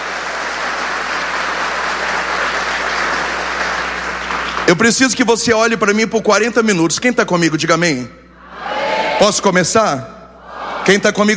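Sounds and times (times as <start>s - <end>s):
audience applauding loudly: 0.0s - 5.4s
speech: 4.7s - 8.2s, 9.2s - 10.2s, 10.9s - 11.3s.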